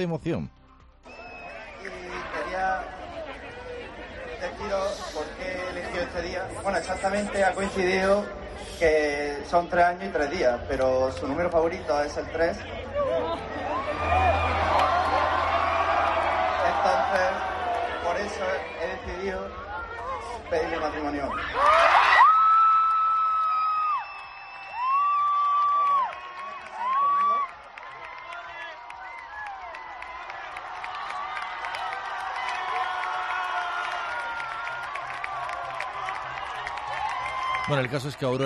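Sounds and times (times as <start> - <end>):
speech: 0.0 - 0.6, 4.4 - 13.5, 18.2 - 19.6, 20.5 - 22.0, 37.7 - 38.4
crowd applauding and cheering: 0.9 - 8.2, 11.3 - 38.4
crowd murmur: 1.1 - 9.5, 12.4 - 20.5.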